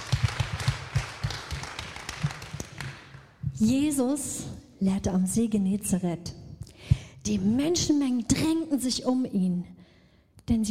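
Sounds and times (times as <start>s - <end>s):
audience clapping at a church gathering: 0.0s - 3.4s
speech: 3.6s - 6.4s, 7.2s - 9.8s, 10.5s - 10.6s.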